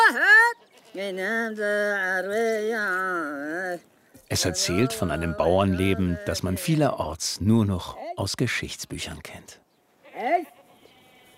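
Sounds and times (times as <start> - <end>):
goat bleating on an island: 0.0 - 7.0, 10.0 - 11.3
speech: 1.0 - 9.6, 10.2 - 10.5.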